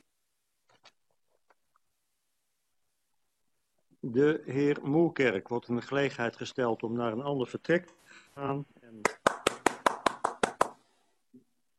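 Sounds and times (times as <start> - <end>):
speech: 4.0 - 9.1
audience applause: 9.1 - 10.8.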